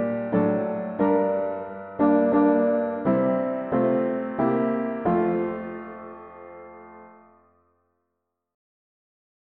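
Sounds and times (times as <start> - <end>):
mono piano hymns: 0.0 - 7.2.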